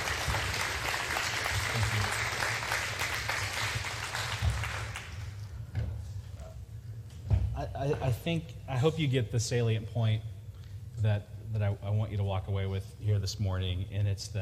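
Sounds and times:
audience applause: 0.0 - 5.4
speech: 7.8 - 10.3, 11.0 - 14.4.

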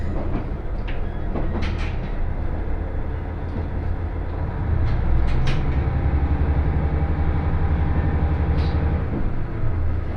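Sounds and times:
Yamada Line local train rumbling: 0.0 - 10.1.

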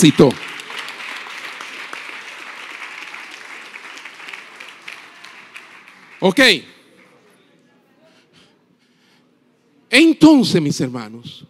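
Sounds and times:
speech: 0.0 - 0.4, 6.2 - 6.7, 9.9 - 11.4
audience applause: 0.0 - 6.4.

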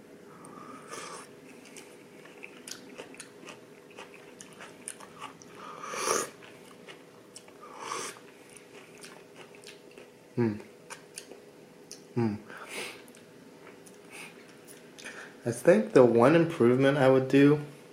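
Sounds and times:
person tasting and chewing food they cooked: 0.4 - 12.1, 13.0 - 15.1
speech: 10.4 - 10.7, 12.2 - 12.5, 15.4 - 17.8.

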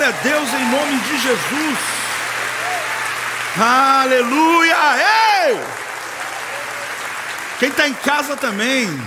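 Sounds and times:
audience applause: 0.0 - 9.0
speech: 0.1 - 2.0, 3.6 - 5.8, 7.6 - 9.0.

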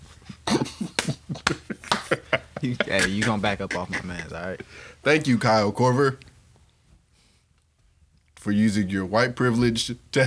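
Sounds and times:
hand clapping: 0.2 - 4.2
laughter: 0.2 - 5.8
speech: 2.1 - 6.3, 8.4 - 10.2.

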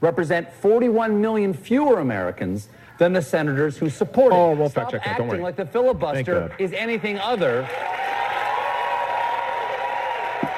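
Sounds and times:
speech: 0.0 - 8.2
audience cheering: 7.0 - 10.5.

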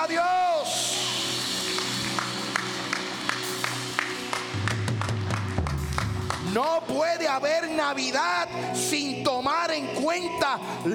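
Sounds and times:
audience applause: 0.8 - 6.7
speech: 6.6 - 10.9.

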